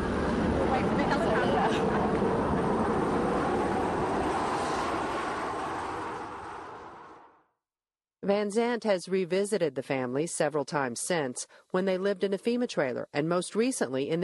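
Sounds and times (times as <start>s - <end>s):
helicopters passing overhead: 0.0s - 7.3s
speech: 8.3s - 14.2s.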